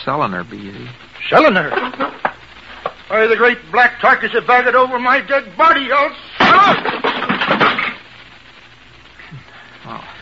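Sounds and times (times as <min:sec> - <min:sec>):
speech: 0:00.0 - 0:02.2, 0:03.1 - 0:07.6
wooden chair breaking under someone: 0:06.4 - 0:08.0.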